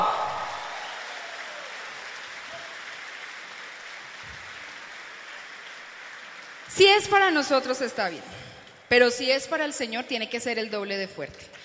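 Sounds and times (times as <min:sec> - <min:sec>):
audience applause: 0:00.0 - 0:07.9
speech: 0:06.7 - 0:11.6.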